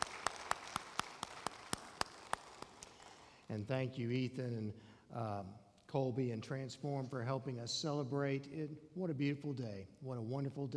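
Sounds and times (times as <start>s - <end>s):
audience applause for graduates: 0.0s - 3.3s
speech: 3.5s - 10.7s.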